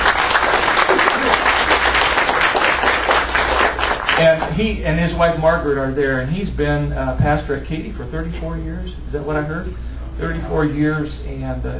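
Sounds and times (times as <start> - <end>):
audience applauding to welcome a visiting pastor: 0.0 - 4.5
speech: 4.2 - 11.7.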